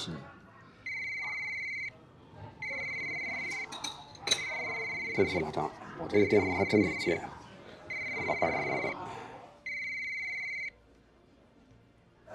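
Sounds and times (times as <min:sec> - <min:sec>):
telephone ringing: 0:00.9 - 0:01.9, 0:02.6 - 0:03.7, 0:04.4 - 0:07.2, 0:07.9 - 0:08.9, 0:09.7 - 0:10.7.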